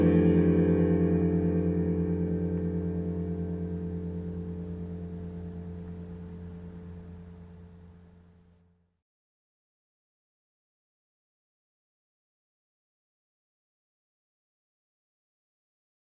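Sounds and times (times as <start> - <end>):
acoustic music: 0.0 - 8.3.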